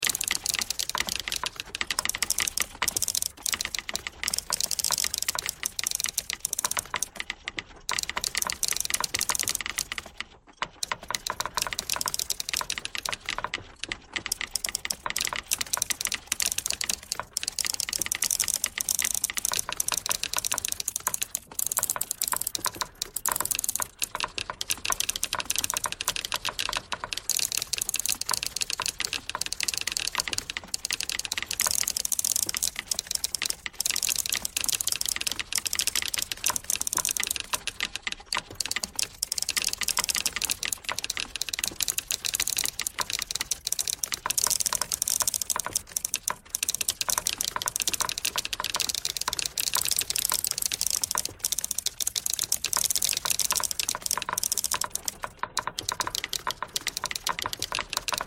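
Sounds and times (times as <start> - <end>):
pentatonic typewriter tones: 0.0 - 58.2.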